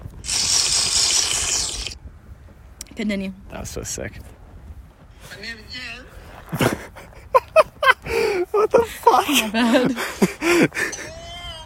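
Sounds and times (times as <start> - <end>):
sipping a can of energy drink: 0.2 - 2.0
speech: 3.0 - 4.4, 9.2 - 11.0
laughter: 6.6 - 11.6.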